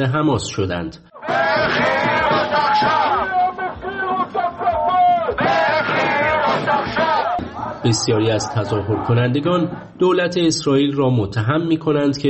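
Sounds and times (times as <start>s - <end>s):
speech: 0.0s - 3.3s, 7.8s - 12.2s
crowd of thousands of protesters shouting and chanting in Tel Aviv: 1.1s - 10.0s.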